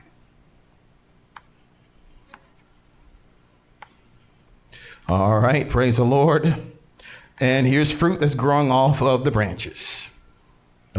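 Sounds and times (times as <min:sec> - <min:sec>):
marker strokes on a board as a teacher draws a vine: 0:01.4 - 0:02.8, 0:03.8 - 0:04.5
speech: 0:05.0 - 0:06.7, 0:07.4 - 0:10.1.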